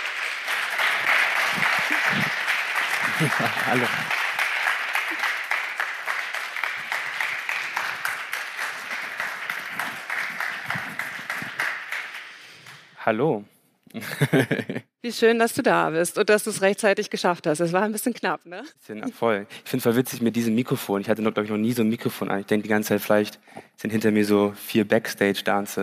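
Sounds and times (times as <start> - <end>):
audience applause: 0.0 - 12.8
laughter: 1.4 - 4.1, 14.0 - 14.8
speech: 3.2 - 4.2, 13.1 - 25.8.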